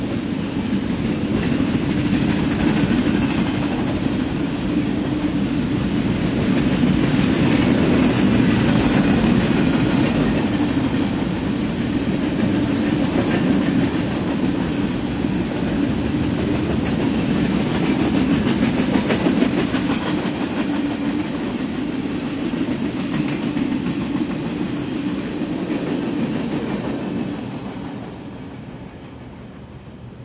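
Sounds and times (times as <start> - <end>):
slow train: 0.0 - 30.2.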